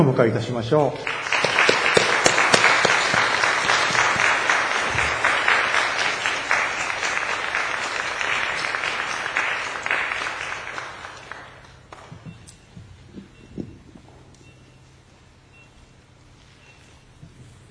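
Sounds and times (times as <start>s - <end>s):
speech: 0.0s - 1.4s
audience applause welcoming the speaker: 1.0s - 12.1s.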